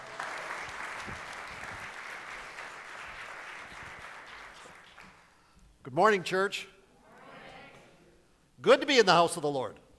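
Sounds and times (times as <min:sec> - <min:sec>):
faint church congregation applause greeting a pastor: 0:00.0 - 0:05.4
speech: 0:06.0 - 0:06.7, 0:08.6 - 0:09.8.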